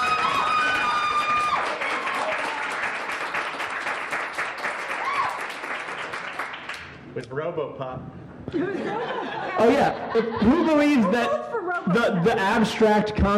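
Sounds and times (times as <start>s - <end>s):
whistles and cheers: 0.0s - 2.8s, 4.9s - 5.6s
audience applause: 0.0s - 7.0s
speech: 7.3s - 13.3s
laughter: 8.5s - 12.9s.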